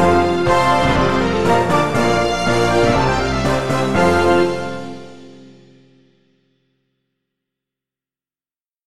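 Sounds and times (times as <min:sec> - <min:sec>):
concert for cello and piano: 0:00.0 - 0:05.2.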